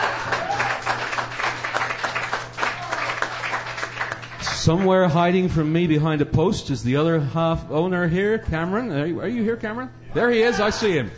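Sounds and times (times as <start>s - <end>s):
audience applause at a songwriter's stage night in a bar: 0.0s - 5.1s
low electrical hum: 0.0s - 11.1s
speech: 4.6s - 11.1s.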